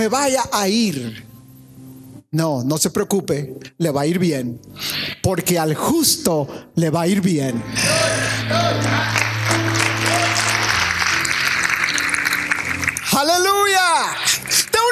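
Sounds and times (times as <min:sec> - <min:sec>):
speech: 0:00.0 - 0:01.3, 0:02.3 - 0:09.4
audience applause: 0:08.4 - 0:14.8.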